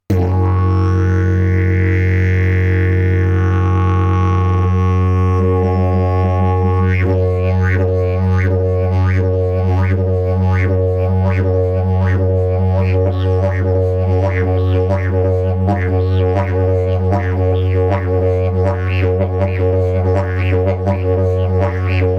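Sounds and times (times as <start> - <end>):
didgeridoo: 0.0 - 22.1.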